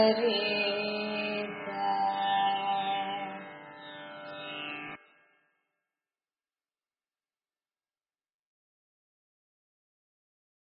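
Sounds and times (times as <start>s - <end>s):
Carnatic music in kanakangi: 0.0s - 5.6s.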